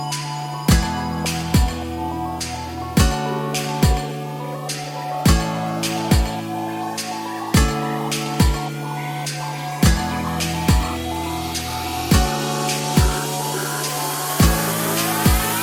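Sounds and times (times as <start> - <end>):
instrumental music: 0.0 - 15.6.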